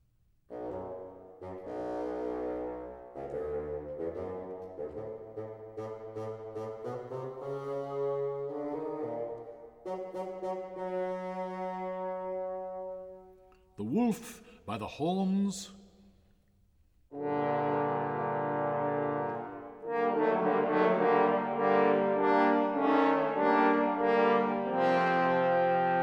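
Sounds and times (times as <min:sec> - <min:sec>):
bassoon playing: 0:00.5 - 0:13.6, 0:17.1 - 0:26.0
speech: 0:14.1 - 0:15.8.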